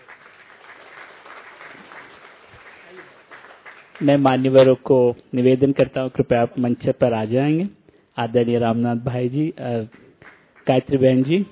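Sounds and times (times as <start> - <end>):
audience applause at a gathering at Gyan Sarovar: 0.0 - 4.2
speech: 4.0 - 10.0, 10.7 - 11.5.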